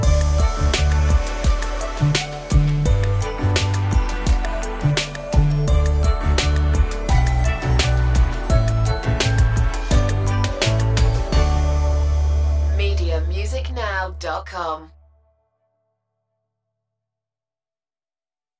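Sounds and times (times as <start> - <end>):
kids hip hop music: 0.0 - 14.8.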